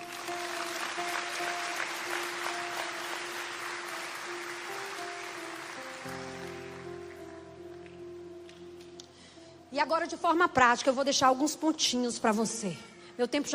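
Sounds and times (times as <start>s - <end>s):
audience round of applause: 0.0s - 8.0s
speech: 9.7s - 13.5s.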